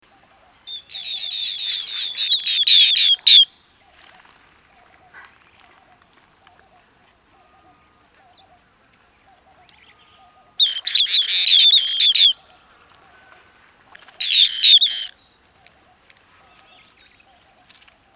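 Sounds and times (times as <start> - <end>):
little green bee-eater calls: 0.1 - 3.5, 9.2 - 12.6, 14.2 - 17.5.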